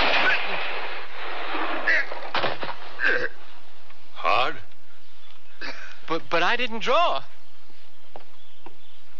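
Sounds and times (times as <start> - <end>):
gunshots in a western radio drama: 0.0 - 3.2
speech: 6.4 - 7.3.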